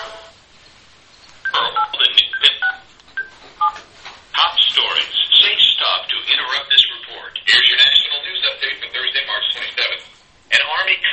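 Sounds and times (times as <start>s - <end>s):
faint hiss: 0.0s - 11.1s
telephone touch-tone dialing beeps: 1.4s - 3.8s.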